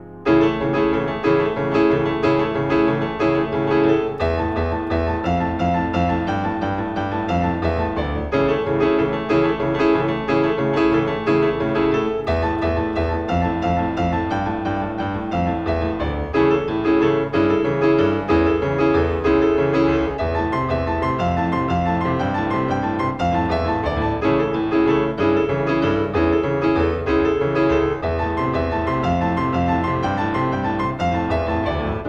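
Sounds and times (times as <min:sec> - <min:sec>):
piano etude: 0:00.0 - 0:32.0.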